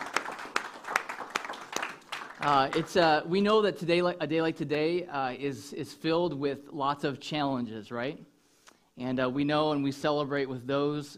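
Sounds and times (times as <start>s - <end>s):
audience clapping in rhythm: 0.0s - 3.2s
speech: 2.4s - 8.3s, 9.0s - 11.1s.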